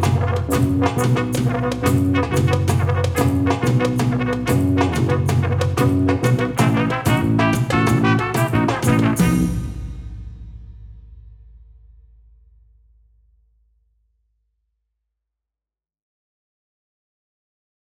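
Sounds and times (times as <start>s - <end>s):
banjo playing: 0.0s - 9.4s.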